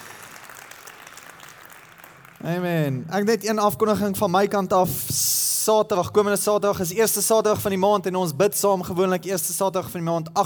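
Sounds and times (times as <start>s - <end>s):
audience clapping and cheering for guests: 0.0s - 2.6s
speech: 2.4s - 10.4s.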